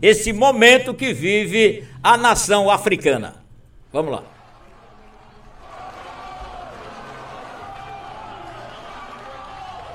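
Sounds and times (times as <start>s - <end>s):
speech: 0.0s - 4.3s
murmur of voices: 4.3s - 9.9s
people clapping after a vote: 4.3s - 9.9s.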